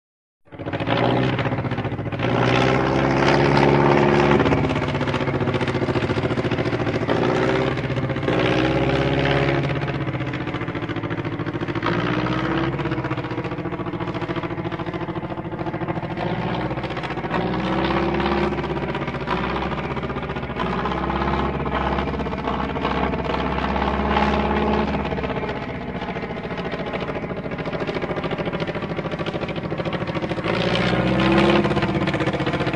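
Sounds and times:
Taylorcraft prop plane engine clattering at idle with bursts of speed: 0.5s - 32.7s.

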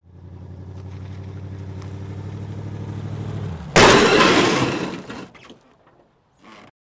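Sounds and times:
moving vehicle colliding with stationary vehicle: 3.8s - 5.5s.

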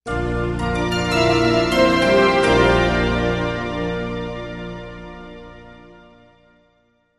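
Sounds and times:
music logo of electric chimes with long reverb: 0.7s - 4.6s.

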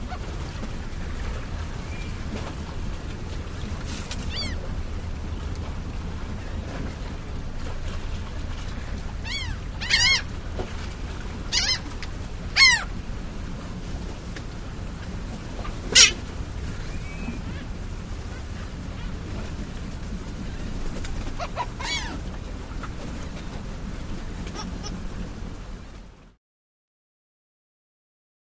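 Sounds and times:
harbor ambience: 0.0s - 26.2s.

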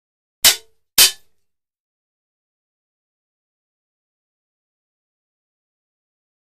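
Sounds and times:
metal swords hitting: 0.4s - 1.3s.

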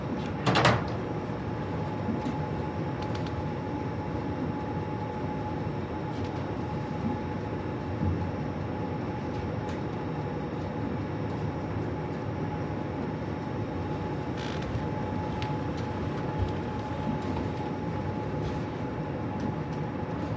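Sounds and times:
cruise ship bridge interior ambience: 0.0s - 20.3s.

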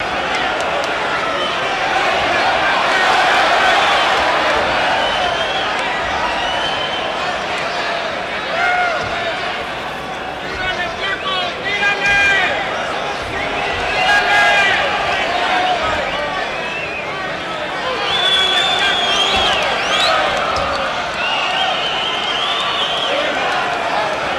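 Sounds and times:
boxing crowd walla: 0.0s - 24.3s.

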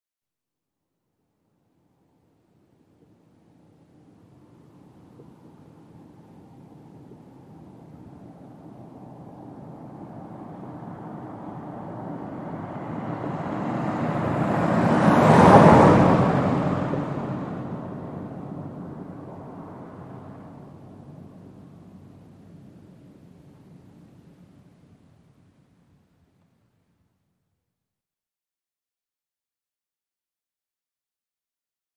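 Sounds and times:
sedan passing at 25 mph: 3.0s - 26.0s.

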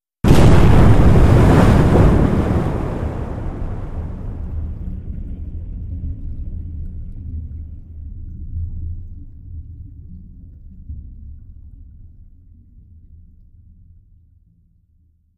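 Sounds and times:
underwater explosions: 0.2s - 8.1s.

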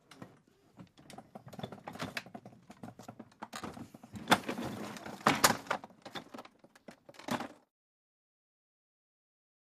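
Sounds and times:
gurneys being unloaded from an ambulance: 0.0s - 7.7s.

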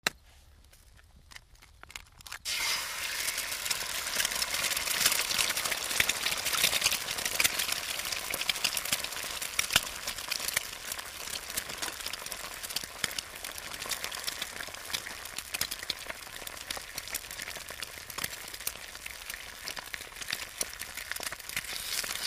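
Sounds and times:
eggs frying on a griddle: 2.4s - 22.2s.

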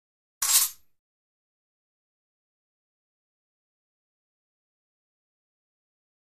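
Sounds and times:
fencing swords sliding: 0.4s - 0.8s.

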